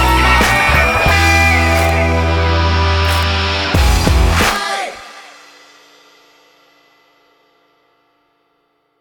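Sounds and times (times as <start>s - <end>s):
rock music: 0.0s - 5.3s.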